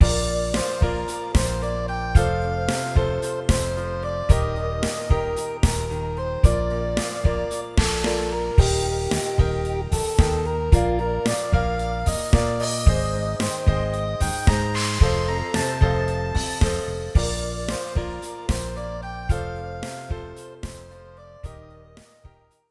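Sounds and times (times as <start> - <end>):
music loop: 0.0 - 21.6.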